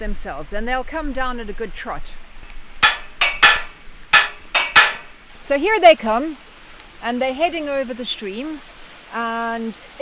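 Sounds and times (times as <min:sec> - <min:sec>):
speech: 0:00.0 - 0:02.2, 0:05.5 - 0:06.4, 0:07.0 - 0:10.0
metallic clanks struck against a gate to call sheep: 0:02.8 - 0:05.2.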